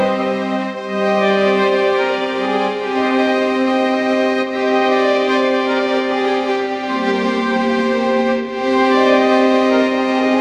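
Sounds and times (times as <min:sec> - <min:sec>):
orchestral strings: 0:00.0 - 0:10.3.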